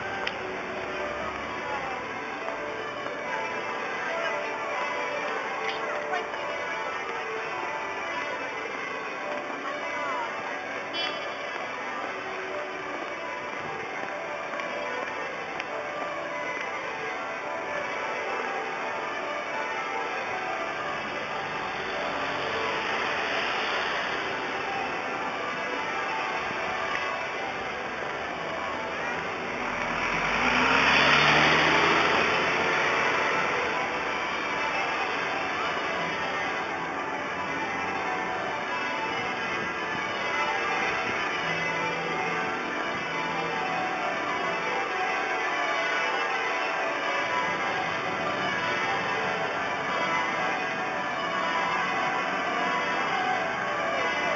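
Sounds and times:
St Martins bells ringing in London: 0.0 - 54.3.

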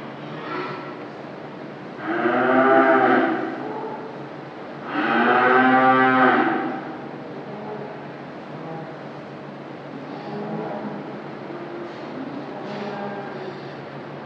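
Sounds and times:
cattle mooing in a byre on a farm: 2.0 - 3.6, 4.8 - 7.0.

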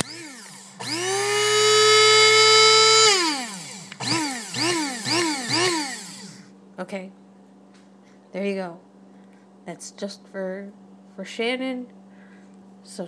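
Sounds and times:
electric coffee grinder running in a kitchen: 0.0 - 6.5
speech: 6.9 - 7.2, 8.4 - 8.9, 9.6 - 12.0, 12.8 - 13.0.

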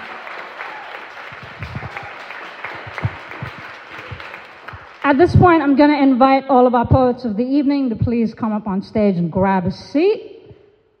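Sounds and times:
audience applause: 0.0 - 5.2
speech: 5.1 - 10.3.

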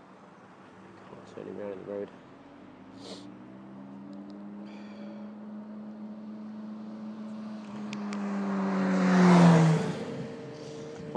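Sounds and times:
road traffic passing: 0.0 - 11.1
speech: 1.3 - 2.3, 3.0 - 3.4.

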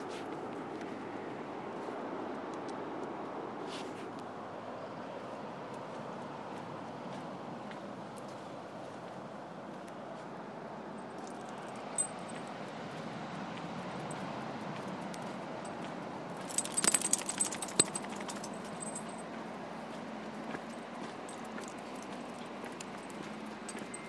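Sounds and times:
seaside ambience: 0.0 - 24.0.

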